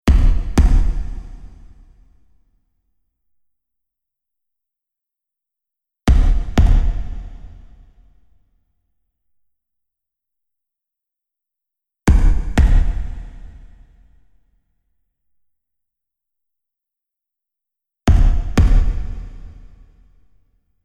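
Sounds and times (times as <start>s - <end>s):
bass: 0.1s - 2.0s, 6.1s - 8.0s, 12.1s - 14.1s, 18.1s - 20.0s.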